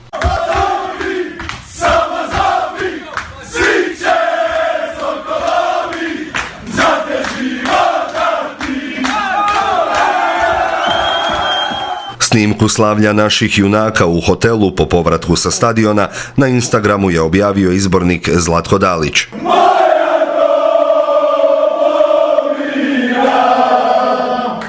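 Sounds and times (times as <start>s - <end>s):
Croatia national football team chanting and shouting in dressing room: 0.0s - 12.2s, 19.3s - 24.6s
cheering and whooping of celebrating football team: 9.0s - 12.2s
speech: 12.4s - 19.5s.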